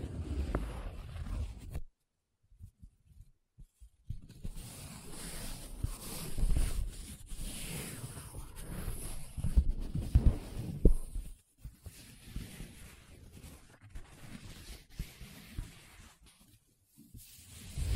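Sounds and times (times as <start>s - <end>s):
paper traced, scratched and rubbed: 0.0s - 1.9s, 4.2s - 17.9s.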